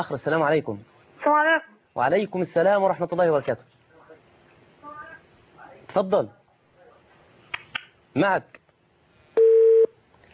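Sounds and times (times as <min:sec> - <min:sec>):
speech: 0:00.0 - 0:03.8, 0:05.9 - 0:06.4, 0:08.2 - 0:08.6
telephone tone after a phone-in call is cut off: 0:09.4 - 0:09.9.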